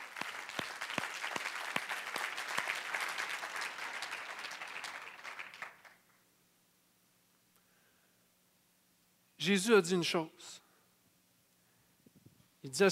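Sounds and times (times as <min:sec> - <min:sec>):
audience applauding: 0:00.0 - 0:06.1
speech: 0:09.4 - 0:10.6, 0:12.6 - 0:12.9.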